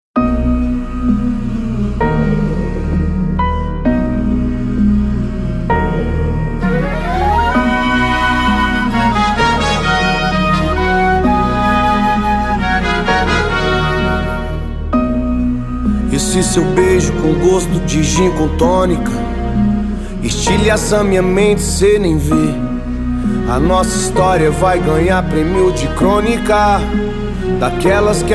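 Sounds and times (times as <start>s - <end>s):
Hungarian hip hop music: 0.2s - 28.3s.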